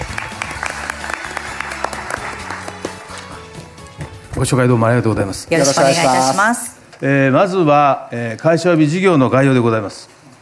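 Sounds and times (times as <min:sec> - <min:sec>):
audience applause: 0:00.0 - 0:03.4
speech: 0:04.4 - 0:10.2.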